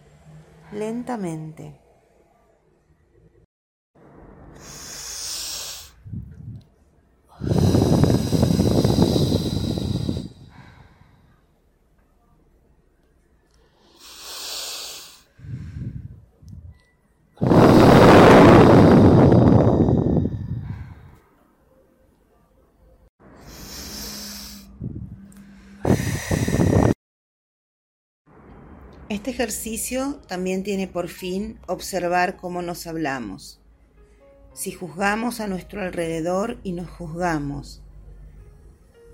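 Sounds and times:
speech: 0.7s - 1.8s, 29.1s - 33.6s, 34.6s - 37.8s
slow deep breathing in a guided relaxation exercise: 4.4s - 6.6s, 7.3s - 11.7s, 13.5s - 16.8s, 17.4s - 21.4s, 23.3s - 27.0s.

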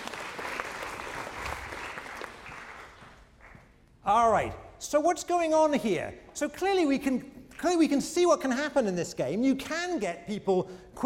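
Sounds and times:
audience applause: 0.0s - 3.6s
speech: 4.1s - 11.0s.

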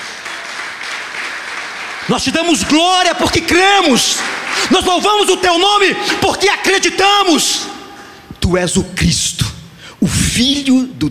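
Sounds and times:
audience applauding: 0.0s - 6.8s
speech: 2.1s - 7.8s, 8.5s - 9.5s, 10.1s - 11.0s.

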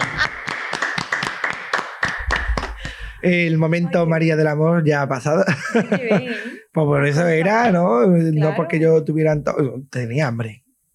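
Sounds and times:
laughter: 0.0s - 0.6s, 5.4s - 6.6s
audience applause: 0.0s - 3.0s
speech: 3.2s - 10.6s.

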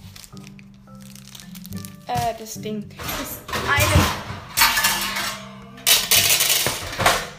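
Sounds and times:
speech: 2.1s - 4.1s
metal baking tray dropping and clattering: 3.0s - 7.3s.

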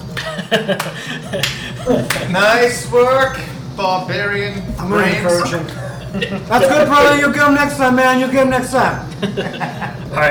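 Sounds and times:
slow clap: 0.0s - 2.7s
laughter: 0.0s - 10.2s
speech: 0.4s - 10.2s.

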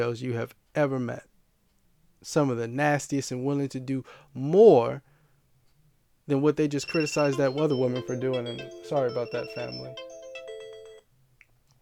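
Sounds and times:
speech: 0.0s - 1.3s, 2.2s - 5.1s, 6.3s - 10.1s
phone alarm going off: 6.8s - 11.0s.

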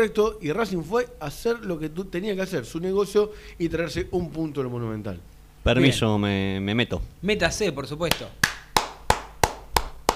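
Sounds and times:
speech: 0.0s - 8.4s
one person clapping hands: 8.1s - 10.1s.

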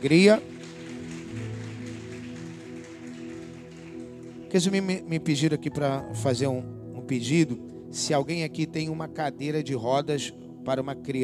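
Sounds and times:
speech: 0.0s - 0.5s, 4.5s - 11.2s
audience applause: 0.0s - 4.8s
sustained low musical tones: 0.0s - 11.2s.

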